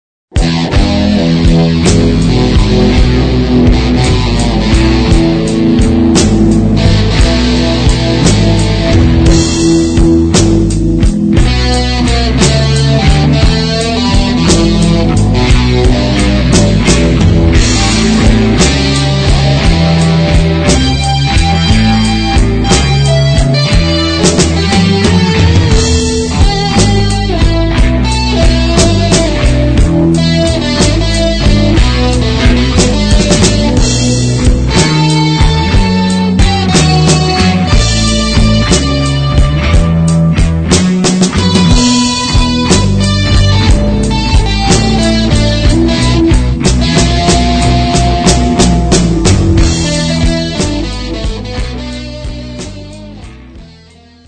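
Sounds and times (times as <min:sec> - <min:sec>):
metallic blues music: 0:00.3 - 0:54.2.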